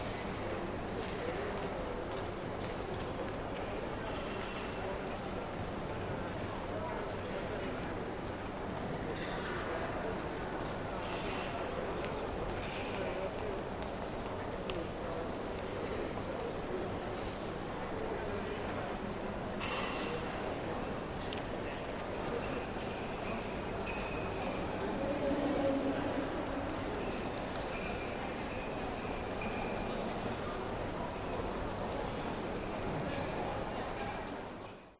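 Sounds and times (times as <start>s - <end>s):
train station ambience: 0.0s - 34.9s.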